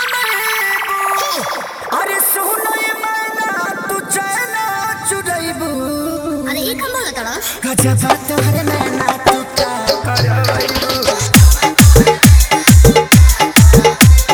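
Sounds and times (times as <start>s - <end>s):
hard dholki bass mix: 7.8s - 14.3s.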